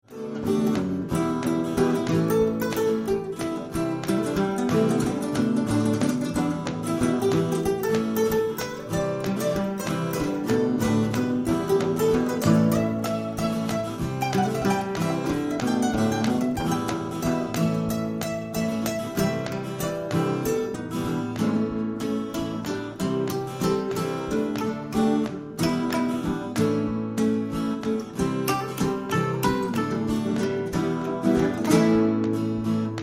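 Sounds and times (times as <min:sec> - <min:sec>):
trio improvising: 0:00.1 - 0:33.0.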